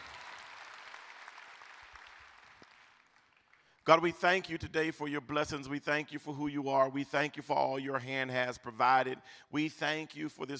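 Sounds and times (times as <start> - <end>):
audience clapping hands in praise: 0.0 - 3.8
speech: 3.9 - 10.5.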